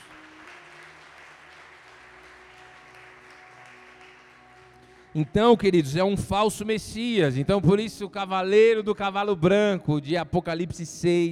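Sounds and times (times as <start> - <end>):
audience applause: 0.0 - 5.6
speech: 5.2 - 11.2.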